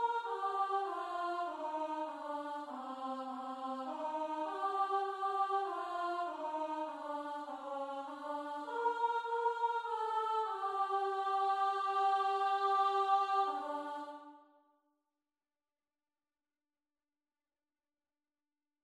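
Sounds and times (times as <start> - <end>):
soprano singing: 0.0 - 14.4.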